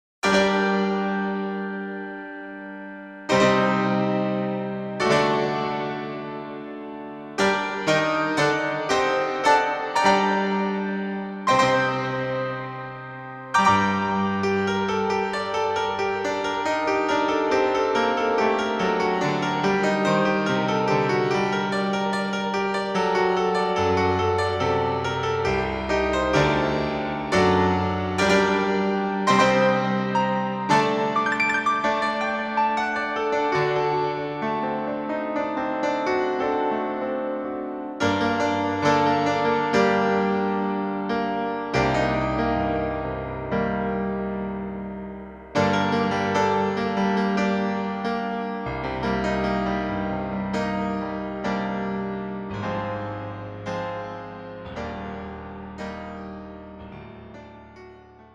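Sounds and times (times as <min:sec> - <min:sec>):
piano improvisation: 0:00.2 - 0:58.3.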